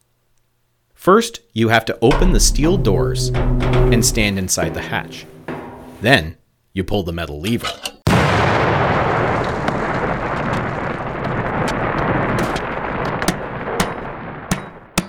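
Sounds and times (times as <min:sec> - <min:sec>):
speech: 0:01.0 - 0:05.4, 0:06.0 - 0:07.9
pea gravel crashing down through floor grate: 0:08.3 - 0:14.5.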